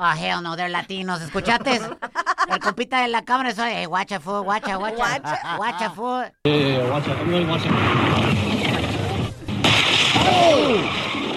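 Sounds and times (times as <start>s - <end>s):
speech: 0.0s - 8.4s
laughter: 1.2s - 2.8s, 4.4s - 6.3s
car crash impact: 7.5s - 11.3s.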